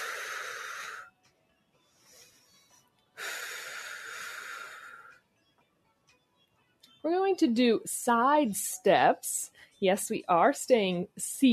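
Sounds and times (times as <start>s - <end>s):
deep breathing during a seated exercise class: 0.0s - 1.1s, 1.8s - 5.2s
speech: 7.0s - 11.5s.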